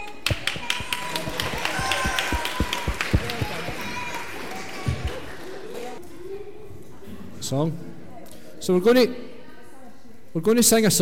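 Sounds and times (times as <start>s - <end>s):
people clapping for the winner: 0.0s - 6.0s
speech: 7.5s - 7.9s, 8.6s - 9.3s, 10.3s - 11.0s.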